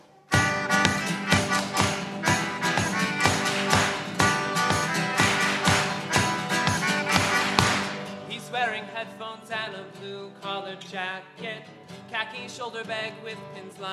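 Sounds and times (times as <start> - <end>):
rhythmic hand clapping along to song: 0.4 - 8.2
speech: 10.8 - 13.9.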